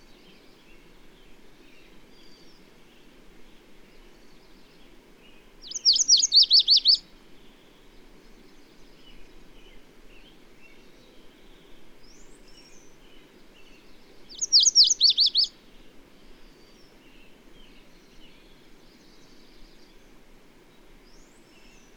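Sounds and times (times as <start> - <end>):
bird song of rapid high sweeping notes: 5.6 - 7.0, 14.3 - 15.5.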